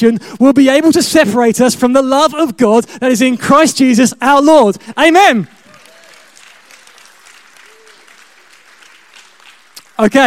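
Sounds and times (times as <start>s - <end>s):
speech: 0.0s - 5.6s, 10.0s - 10.2s
audience applause: 5.5s - 10.2s.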